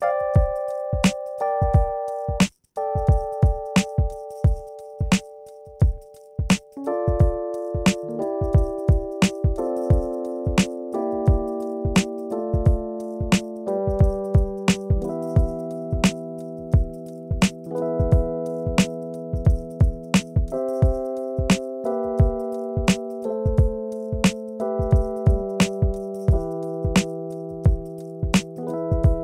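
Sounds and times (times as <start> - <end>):
instrumental music: 0.0 - 29.2.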